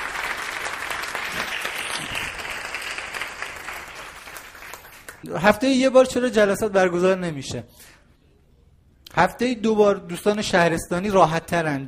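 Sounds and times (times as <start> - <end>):
audience applauding loudly: 0.0 - 5.3
speech: 5.2 - 8.0, 9.2 - 11.8.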